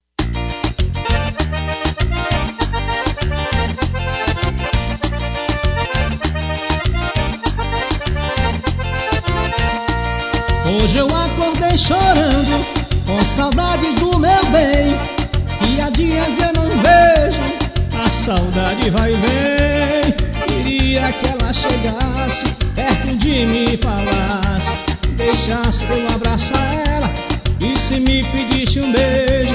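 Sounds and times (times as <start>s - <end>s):
forronejo music: 0.2s - 29.5s.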